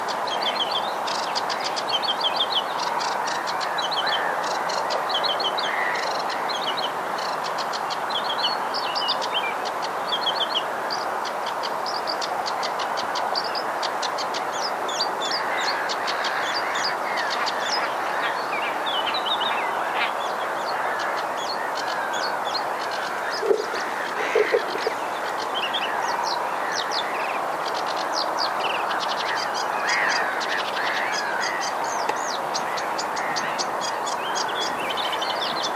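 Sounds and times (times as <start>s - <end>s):
phragmites reeds at a pond: 0.0s - 35.7s.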